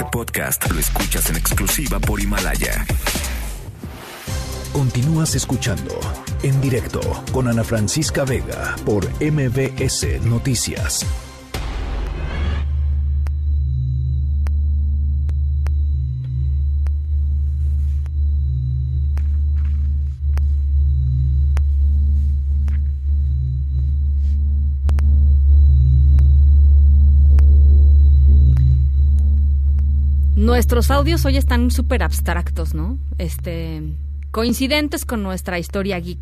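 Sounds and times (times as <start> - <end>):
speech: 0.0 - 3.4, 4.8 - 11.3, 30.5 - 36.2
recorded sound of the sun: 13.3 - 32.0.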